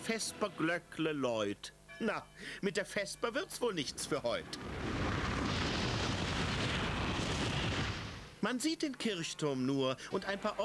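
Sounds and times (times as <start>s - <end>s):
speech: 0.0s - 5.0s, 8.4s - 10.6s
cartoon avalanche rushing down a mountain: 4.4s - 8.3s.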